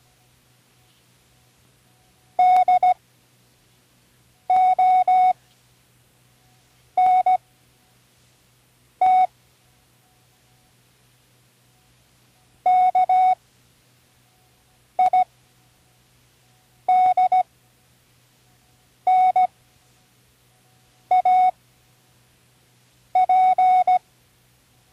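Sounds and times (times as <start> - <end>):
Morse code spelling words: 2.4 - 3.0, 4.5 - 5.4, 7.0 - 7.4, 9.0 - 9.3, 12.6 - 13.4, 15.0 - 15.3, 16.9 - 17.5, 19.1 - 19.5, 20.6 - 21.6, 23.2 - 24.0.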